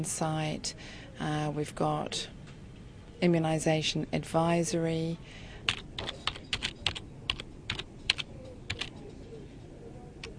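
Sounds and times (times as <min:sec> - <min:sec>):
speech: 0:00.0 - 0:02.4, 0:03.2 - 0:06.2
typing a search on a computer keyboard: 0:05.7 - 0:09.0.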